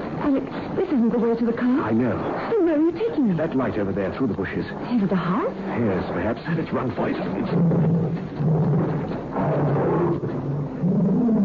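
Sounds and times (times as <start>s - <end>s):
speech: 0.3s - 11.1s
tiger roaring: 7.2s - 11.4s.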